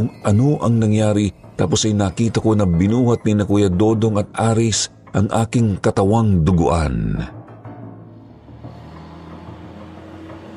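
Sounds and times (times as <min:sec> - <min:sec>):
speech: 0:00.0 - 0:07.4
truck driving away: 0:08.0 - 0:10.5.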